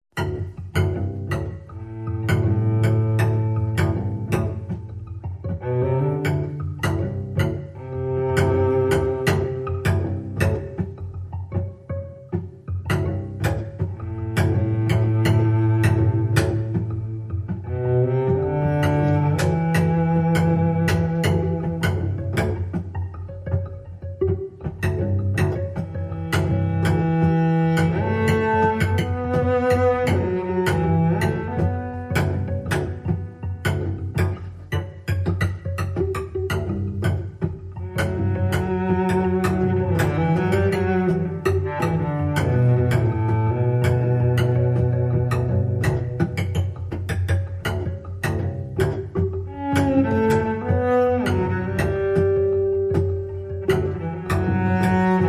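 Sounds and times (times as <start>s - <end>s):
solo cello piece: 0.2s - 55.2s.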